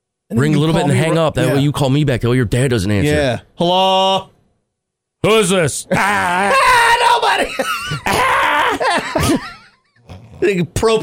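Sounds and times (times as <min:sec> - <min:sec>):
speech: 0:00.3 - 0:04.3, 0:05.2 - 0:09.5, 0:10.4 - 0:11.0
laughter: 0:00.4 - 0:01.7, 0:07.3 - 0:09.8
loud harsh scream: 0:05.9 - 0:08.8.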